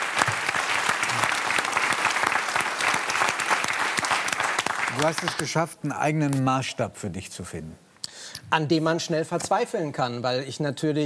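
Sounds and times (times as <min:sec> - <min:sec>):
audience applause: 0:00.0 - 0:05.6
speech: 0:05.0 - 0:11.0.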